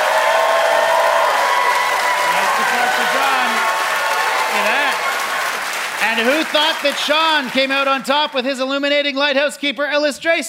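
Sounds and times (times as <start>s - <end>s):
audience applause: 0.0s - 8.6s
speech: 6.0s - 10.4s.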